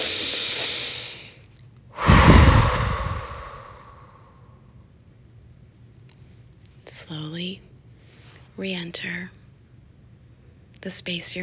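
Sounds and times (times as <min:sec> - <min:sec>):
deep breath released audibly: 0:00.0 - 0:04.7
speech: 0:08.6 - 0:09.4, 0:10.8 - 0:11.4.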